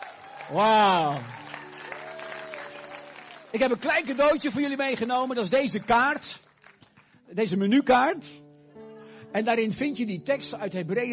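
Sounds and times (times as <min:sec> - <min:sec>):
audience applause: 0:00.0 - 0:07.1
speech: 0:00.5 - 0:01.4, 0:03.5 - 0:06.4, 0:07.3 - 0:08.4, 0:09.3 - 0:11.1.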